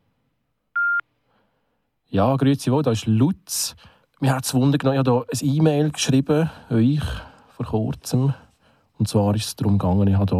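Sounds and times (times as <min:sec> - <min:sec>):
Swisscom voicemail signal tone: 0:00.8 - 0:01.0
speech: 0:02.1 - 0:08.4, 0:09.0 - 0:10.3.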